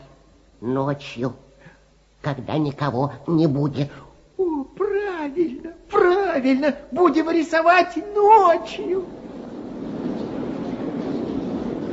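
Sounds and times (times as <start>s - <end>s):
speech: 0.6s - 1.4s, 2.2s - 4.0s, 5.3s - 9.2s
subway train rumbling: 5.6s - 11.9s.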